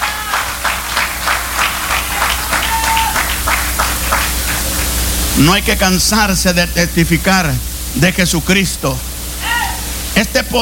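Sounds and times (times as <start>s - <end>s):
audience clapping loudly: 0.0s - 5.3s
speech: 5.4s - 9.1s, 10.2s - 10.6s.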